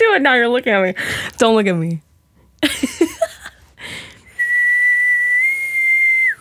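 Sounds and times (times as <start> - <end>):
speech: 0.2 - 2.0
person whistling a movie's ringtone melody: 4.4 - 6.3.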